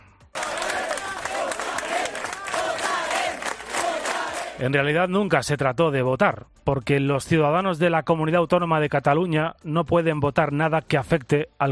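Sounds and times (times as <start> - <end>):
people clapping: 0.3 - 4.7
large crowd shouting and yelling during police intervention: 0.4 - 4.6
speech: 4.6 - 11.6.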